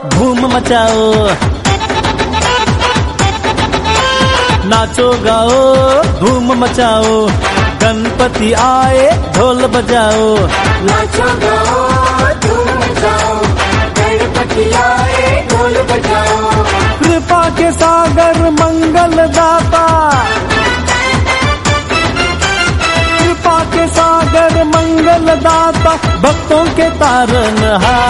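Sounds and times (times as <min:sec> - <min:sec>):
dhol drumming: 0:00.1 - 0:28.0.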